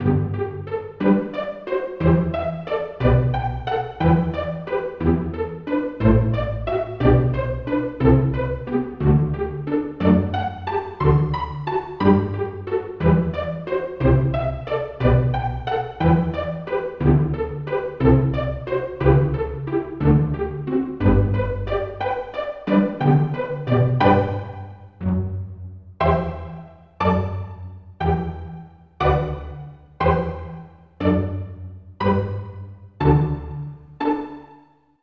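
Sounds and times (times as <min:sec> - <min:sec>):
pizzicato section: 0:00.0 - 0:34.6.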